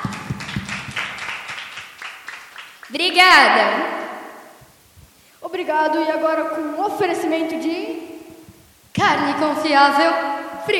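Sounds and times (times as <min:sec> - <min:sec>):
applause: 0:00.0 - 0:03.0
speech: 0:02.9 - 0:04.0, 0:05.6 - 0:08.1, 0:09.0 - 0:10.7.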